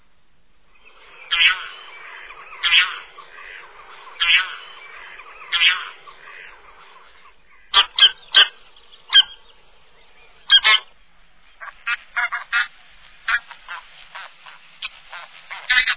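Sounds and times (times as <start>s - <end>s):
bean goose honking: 1.3s - 9.4s, 10.5s - 10.9s, 11.6s - 15.9s.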